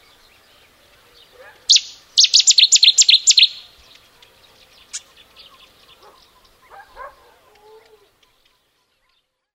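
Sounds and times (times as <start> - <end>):
Cetti's warbler song burst: 0.0 - 6.8.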